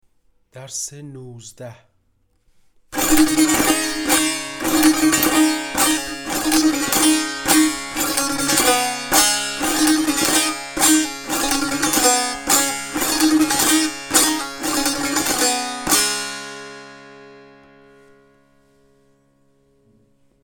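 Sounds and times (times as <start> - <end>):
tanbur practice: 3.0 - 18.7.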